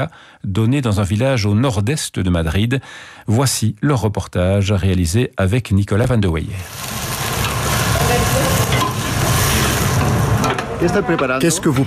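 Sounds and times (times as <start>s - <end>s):
speech: 0.0s - 7.0s, 10.8s - 11.8s
onions frying in a pan for a ravioli filling: 6.6s - 10.6s.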